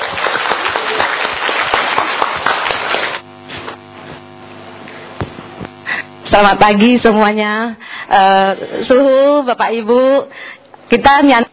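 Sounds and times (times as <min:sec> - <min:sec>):
audience applause: 0:00.0 - 0:03.3
soft steady tonal hum: 0:03.2 - 0:11.5
speech: 0:06.3 - 0:11.5.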